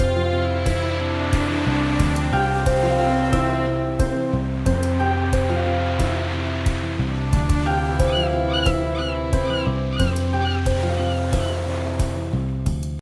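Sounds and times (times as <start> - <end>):
ocean: 0.0 - 13.0.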